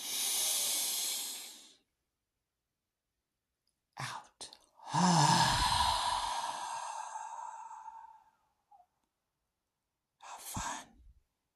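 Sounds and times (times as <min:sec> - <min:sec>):
deep cleansing breath drawn in: 0:00.0 - 0:01.8, 0:04.8 - 0:08.4.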